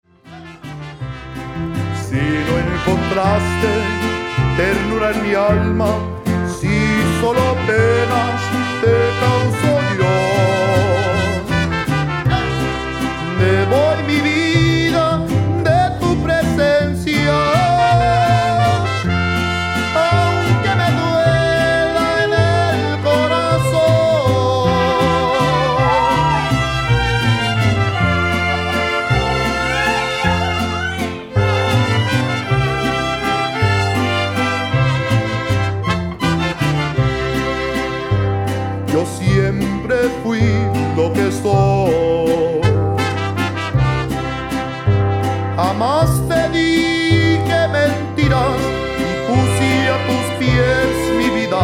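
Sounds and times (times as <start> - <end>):
mariachi music: 0.0 - 51.6
laughter: 25.1 - 26.5, 28.4 - 31.2.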